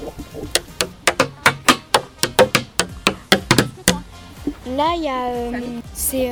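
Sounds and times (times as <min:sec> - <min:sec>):
wooden sticks striking metal cans: 0:00.0 - 0:04.1
speech: 0:04.7 - 0:06.3.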